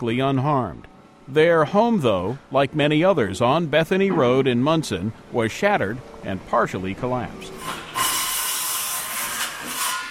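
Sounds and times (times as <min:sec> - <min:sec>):
speech: 0:00.0 - 0:07.8
saws at rebuilding site on Bethany Road: 0:07.5 - 0:10.0.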